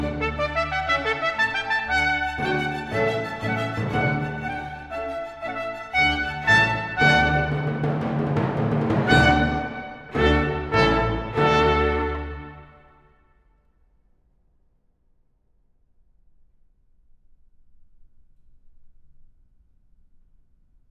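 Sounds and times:
violins in a baroque sinfonia allegro: 0:00.0 - 0:12.9
trumpets in a baroque sinfonia allegro: 0:00.0 - 0:13.2.

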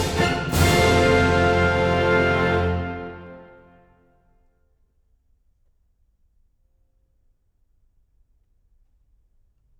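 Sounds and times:
orchestra playing in F major: 0:00.0 - 0:04.0.

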